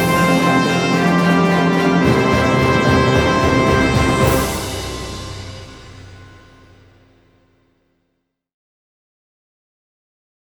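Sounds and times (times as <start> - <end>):
British travel music: 0.0 - 7.4.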